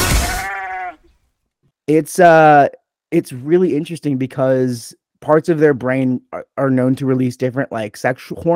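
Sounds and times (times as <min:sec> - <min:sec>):
sheep bleating: 0:00.1 - 0:01.1
speech: 0:01.9 - 0:08.5.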